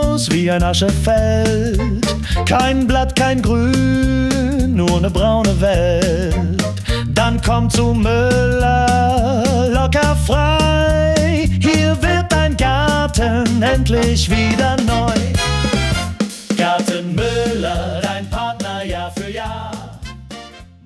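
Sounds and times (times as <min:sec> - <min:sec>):
big band music: 0:00.0 - 0:20.8.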